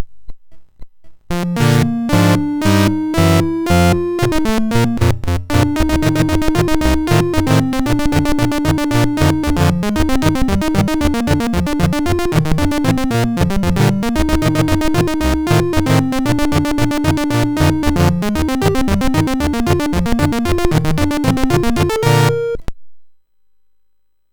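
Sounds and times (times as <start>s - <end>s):
MOS6581R4 SID chip music: 1.3s - 22.7s.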